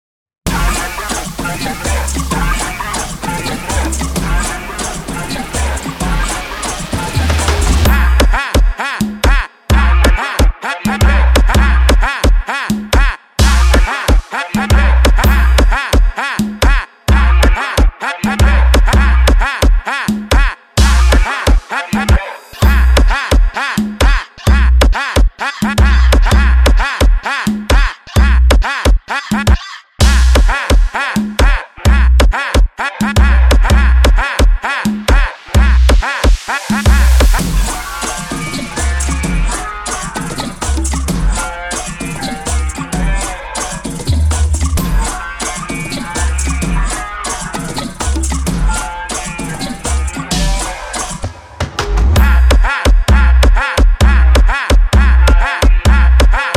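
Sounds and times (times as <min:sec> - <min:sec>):
phonk version: 0:00.5 - 0:56.5.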